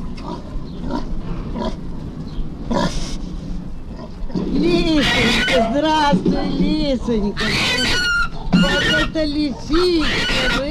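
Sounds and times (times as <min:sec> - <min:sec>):
pig grunting: 0:00.2 - 0:01.9, 0:03.9 - 0:05.9, 0:07.2 - 0:10.7
speech: 0:05.8 - 0:08.0, 0:08.7 - 0:10.7.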